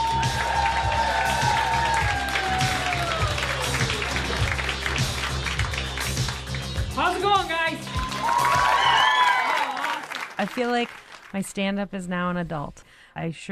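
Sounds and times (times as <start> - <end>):
comedy club audience cheering: 0.0 - 5.8, 7.8 - 10.6
comedy club audience applause: 0.0 - 7.2, 7.9 - 11.4
speech: 10.6 - 13.5.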